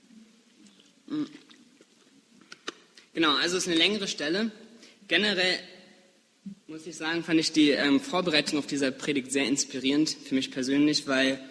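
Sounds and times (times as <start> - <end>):
sip or gulp of a drink during a German sermon: 0.6 - 3.0
speech: 1.1 - 1.4, 3.2 - 5.7, 6.7 - 11.4.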